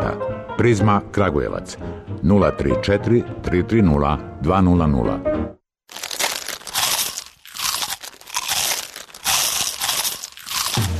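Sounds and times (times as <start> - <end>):
speech: 0.2 - 5.6
crunchy bites into a Vanini snack: 5.9 - 10.9.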